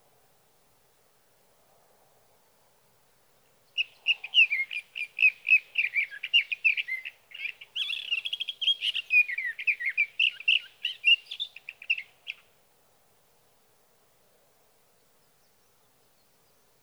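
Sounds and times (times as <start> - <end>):
sage thrasher song: 3.7 - 12.4.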